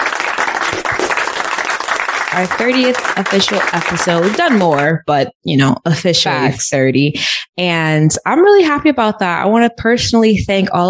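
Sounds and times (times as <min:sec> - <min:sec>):
applause: 0:00.0 - 0:05.0
speech: 0:02.4 - 0:10.8.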